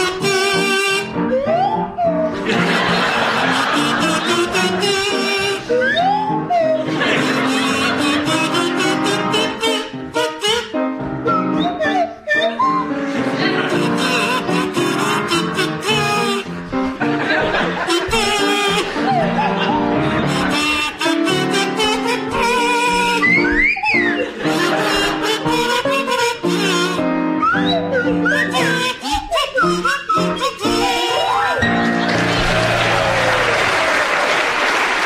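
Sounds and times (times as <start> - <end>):
kazoo playing a tune: 0.0 - 32.3
swanee whistle playing a tune: 0.2 - 3.4, 4.2 - 9.5, 11.2 - 16.4, 17.8 - 24.3, 25.6 - 31.8
laughter: 2.3 - 5.0, 6.7 - 8.4, 13.1 - 14.4, 16.8 - 20.8, 23.9 - 25.6, 30.9 - 34.9.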